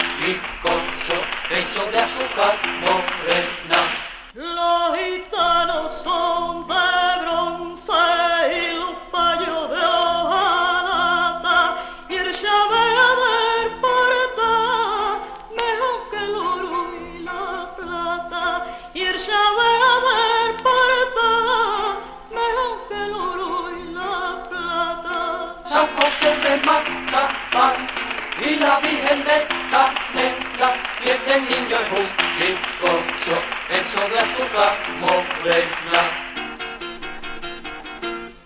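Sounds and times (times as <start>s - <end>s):
hand clapping: 0.0s - 4.3s, 25.7s - 36.7s
flamenco song: 0.0s - 38.4s
speech: 1.5s - 4.7s, 34.1s - 36.2s.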